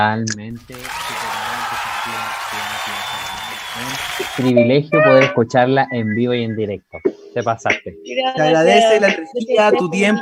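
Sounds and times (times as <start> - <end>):
speech: 0.0 - 1.4, 2.0 - 10.1
audience applause: 0.6 - 4.5.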